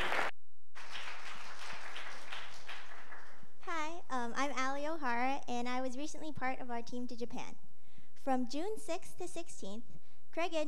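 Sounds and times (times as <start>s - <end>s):
audience applause welcoming a speaker: 0.0s - 3.4s
speech: 4.2s - 10.6s.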